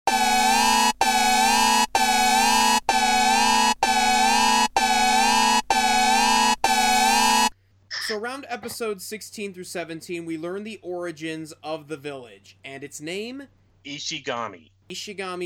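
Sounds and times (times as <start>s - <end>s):
air horn spoiler alarm sound effect: 0.1s - 7.5s
speech: 8.2s - 15.4s.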